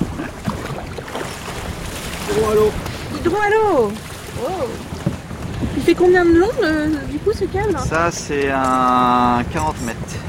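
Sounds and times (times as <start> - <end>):
water splashing: 0.0 - 10.2
wind blowing across a boat at sea buffeting the microphone: 0.0 - 10.2
speech: 2.4 - 4.9, 5.8 - 10.0.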